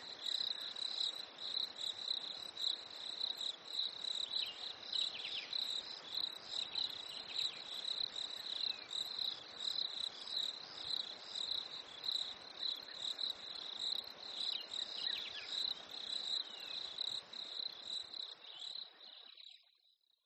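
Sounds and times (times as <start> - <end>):
crickets chirping in a steady chorus at a lake in winter: 0.0 - 20.2.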